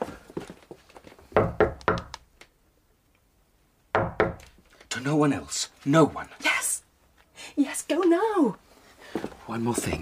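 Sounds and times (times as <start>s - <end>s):
coded signal knock on a wooden door: 1.4s - 2.1s, 4.0s - 4.5s
speech: 5.0s - 6.5s, 7.6s - 8.6s, 9.5s - 9.9s.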